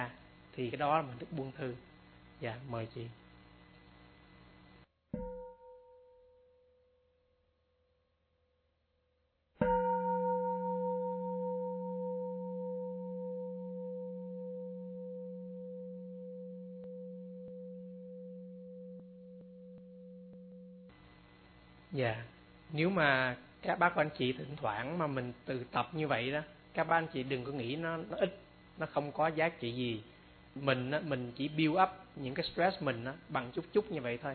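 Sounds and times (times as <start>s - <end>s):
speech: 0.0s - 3.2s, 22.0s - 34.3s
meditation bell ringing: 5.2s - 6.4s, 9.6s - 20.9s.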